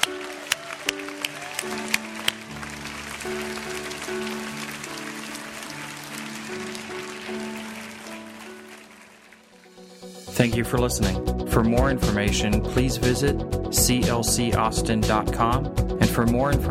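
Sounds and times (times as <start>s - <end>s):
audience clapping: 0.0s - 10.3s
sustained organ or keyboard chords: 0.0s - 16.3s
speech: 10.4s - 16.6s.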